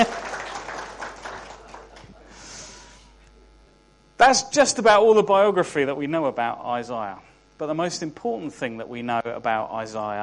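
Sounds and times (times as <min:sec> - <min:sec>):
audience applause: 0:00.0 - 0:02.4
speech: 0:04.2 - 0:10.2.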